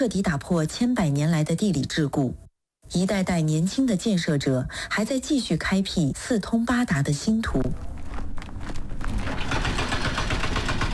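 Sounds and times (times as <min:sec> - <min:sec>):
speech: 0:00.0 - 0:07.9
large machinery working at Weixin to Yiliang expressway construction site: 0:09.3 - 0:10.9.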